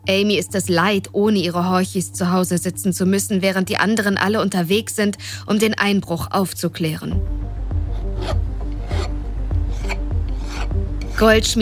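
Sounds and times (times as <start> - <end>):
speech: 0.1 - 7.6, 8.2 - 9.1, 11.2 - 11.6
goldsmith filing a ring with a hand file at her workbench: 7.8 - 11.4.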